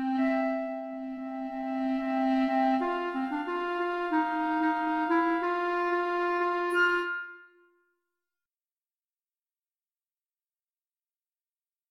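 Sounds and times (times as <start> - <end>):
jazzy Christmas carol: 0.0 - 7.4.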